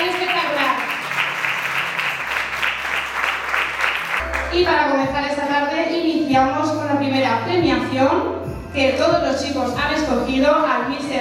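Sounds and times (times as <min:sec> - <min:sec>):
crowd applauding: 0:00.0 - 0:04.6
speech: 0:04.6 - 0:11.1.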